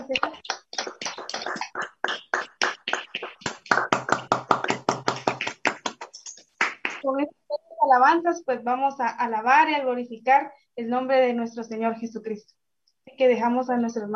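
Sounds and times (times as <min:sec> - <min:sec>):
crowd clapping: 0:00.0 - 0:07.0
speech: 0:07.1 - 0:12.6, 0:13.2 - 0:14.1.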